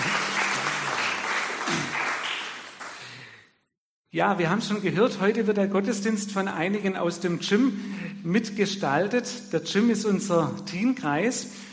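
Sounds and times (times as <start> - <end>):
audience clapping: 0.0 - 3.4
speech: 4.1 - 11.7.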